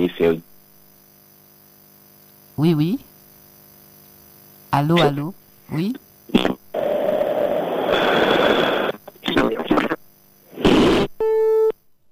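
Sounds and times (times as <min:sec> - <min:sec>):
noisy telephone line hum: 0:00.0 - 0:12.1
speech: 0:00.1 - 0:00.5, 0:02.6 - 0:03.1, 0:04.7 - 0:06.5
crackling bursts: 0:06.3 - 0:11.7
telephone busy signal after dropped call: 0:11.2 - 0:11.8.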